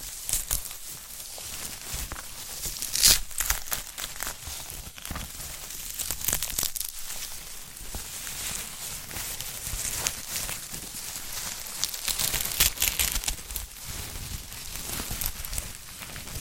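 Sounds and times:
crinkly crackling handling of a sprouted coconut: 0.0 - 16.4.

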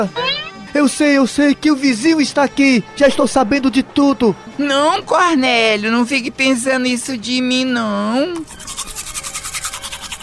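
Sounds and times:
speech: 0.0 - 8.8
toothbrush scrubbing: 8.4 - 10.2.

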